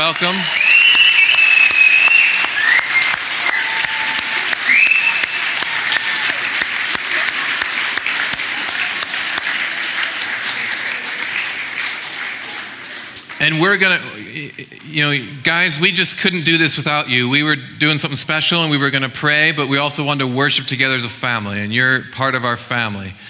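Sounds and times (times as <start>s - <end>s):
speech: 0.0s - 0.6s, 13.4s - 23.2s
crowd applause for the children and youth at a worship gathering: 0.0s - 15.7s
high whistles: 0.4s - 3.9s, 4.6s - 5.6s.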